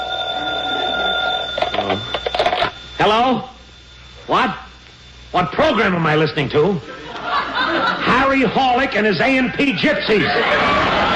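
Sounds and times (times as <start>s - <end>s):
telephone bell ringing: 0.0s - 3.4s
speech: 3.0s - 3.5s, 4.3s - 4.6s, 5.3s - 7.0s, 8.3s - 11.1s
laughter: 6.8s - 11.1s.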